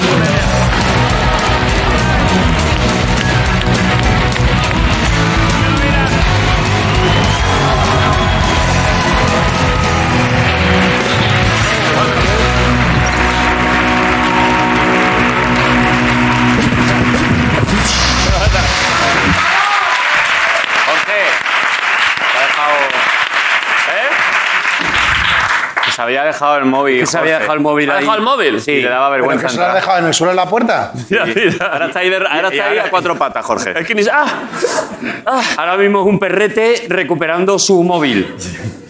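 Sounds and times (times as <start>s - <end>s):
studio audience applause: 0.0s - 26.4s
speech: 26.3s - 38.8s
laughter: 30.9s - 35.6s.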